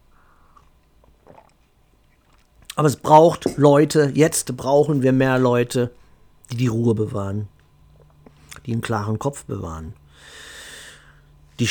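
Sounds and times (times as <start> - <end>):
person sipping coffee: 0.2 - 2.8
speech: 2.8 - 7.5, 8.7 - 10.4.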